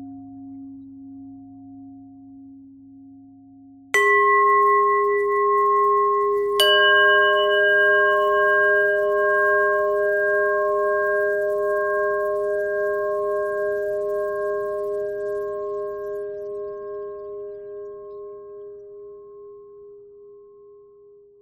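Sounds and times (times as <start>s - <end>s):
pentatonic bell melody: 4.0s - 18.7s.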